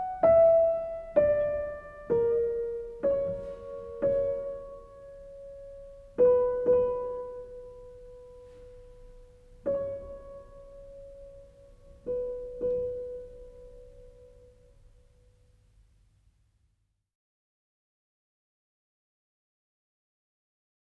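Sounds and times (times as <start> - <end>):
solo piano: 0.0 - 16.0.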